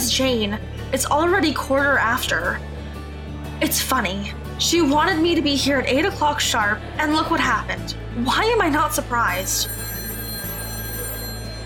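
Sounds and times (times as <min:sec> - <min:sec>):
speech: 0:00.2 - 0:02.7, 0:03.6 - 0:10.0
telephone ringing: 0:09.3 - 0:11.6.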